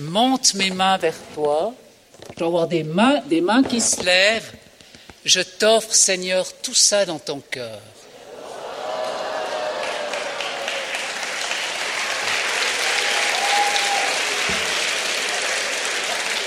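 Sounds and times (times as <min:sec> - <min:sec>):
speech: 0:00.0 - 0:04.6, 0:05.2 - 0:08.0
audience applause: 0:08.4 - 0:16.4.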